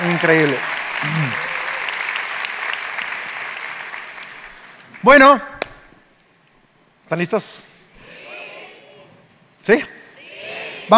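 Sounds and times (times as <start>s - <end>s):
audience applause: 0.0s - 5.0s
speech: 0.2s - 1.4s, 5.0s - 5.5s, 7.1s - 7.7s, 9.6s - 10.0s.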